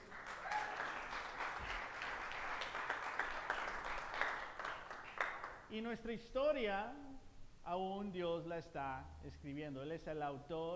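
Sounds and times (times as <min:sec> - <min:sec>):
audience applause: 0:00.0 - 0:05.6
speech: 0:05.7 - 0:10.7.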